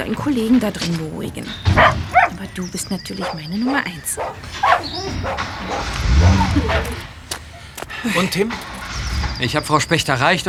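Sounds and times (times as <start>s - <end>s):
speech: 0.0s - 7.1s, 8.0s - 8.7s, 9.4s - 10.4s
dog barking and whimpering: 1.7s - 2.4s, 3.2s - 7.7s.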